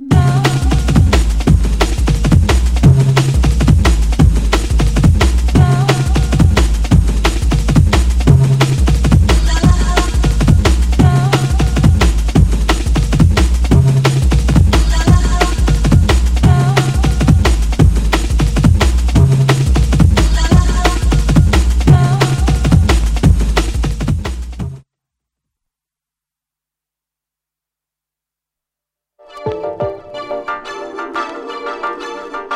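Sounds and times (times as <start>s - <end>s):
drum and bass music: 0.0s - 24.8s.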